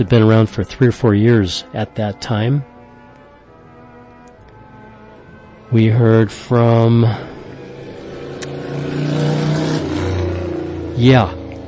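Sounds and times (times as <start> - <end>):
speech: 0.0 - 2.7, 5.7 - 7.3, 11.0 - 11.4
street traffic noise from below through open windows: 2.8 - 11.6.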